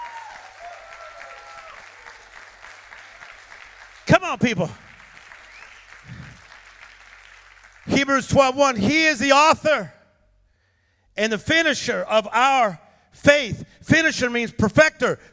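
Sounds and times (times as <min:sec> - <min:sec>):
audience applause: 0:00.0 - 0:07.9
speech: 0:04.2 - 0:04.9, 0:07.9 - 0:10.0, 0:11.2 - 0:15.3.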